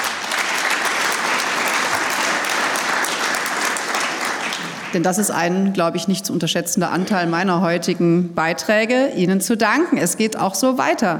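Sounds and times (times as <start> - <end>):
audience applause: 0.0 - 5.0
speech: 4.9 - 11.1.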